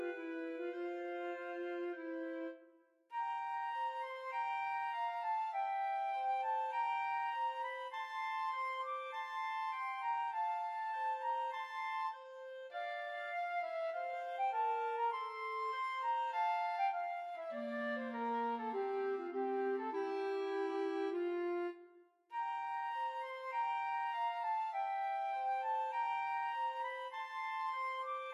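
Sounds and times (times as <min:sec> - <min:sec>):
slow flute and clarinet duet: 0:00.0 - 0:28.3.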